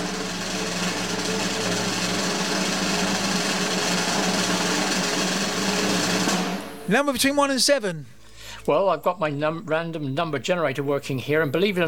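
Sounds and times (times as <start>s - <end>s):
drum roll: 0.0s - 7.8s
speech: 6.9s - 11.8s.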